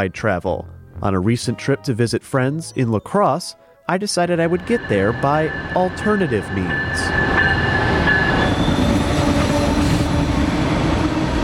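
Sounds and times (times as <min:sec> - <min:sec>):
speech: 0:00.0 - 0:07.6
passenger train rumbling along the rails: 0:04.4 - 0:11.4
faint metallic squeals and rattling from the train cars: 0:04.5 - 0:10.1.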